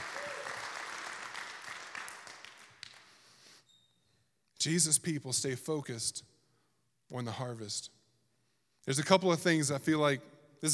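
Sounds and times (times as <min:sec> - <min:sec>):
audience hand clapping: 0:00.0 - 0:03.4
speech: 0:04.6 - 0:06.3, 0:07.1 - 0:08.0, 0:08.8 - 0:10.7.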